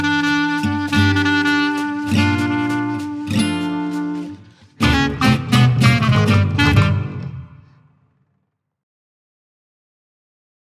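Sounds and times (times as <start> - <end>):
jazz orchestra: 0.0 - 7.7.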